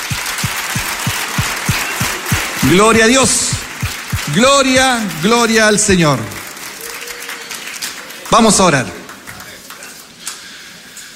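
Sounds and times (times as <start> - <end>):
evenly spaced low thumps: 0.0 - 5.3
church congregation clapping: 0.0 - 10.2
speech: 2.6 - 3.6, 4.3 - 6.4, 8.3 - 9.0.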